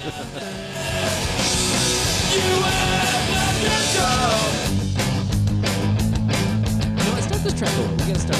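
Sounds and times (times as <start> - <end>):
laughter: 0.0 - 4.7, 7.0 - 8.3
loud punk rock song with distorted guitars and shouted vocals: 0.0 - 8.3.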